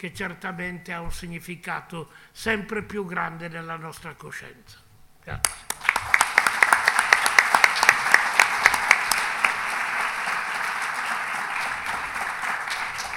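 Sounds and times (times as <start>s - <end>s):
speech: 0.0s - 5.8s
audience applause for the prior: 5.4s - 13.1s.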